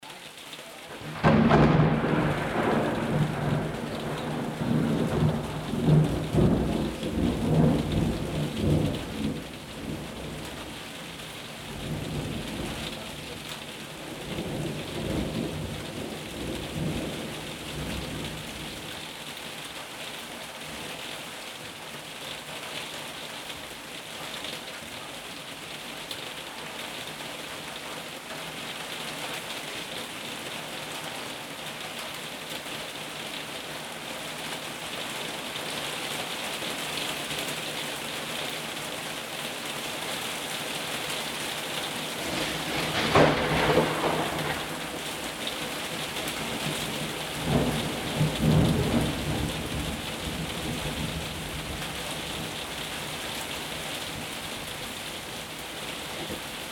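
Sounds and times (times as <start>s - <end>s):
summer rain: 0.0s - 56.7s
thunder: 1.0s - 10.7s, 14.1s - 18.5s, 42.1s - 51.7s.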